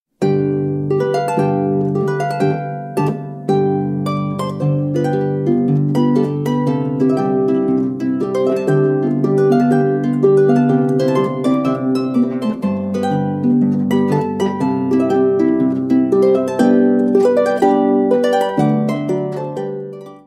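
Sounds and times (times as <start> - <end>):
march on Tyrolean harp: 0.2 - 20.2.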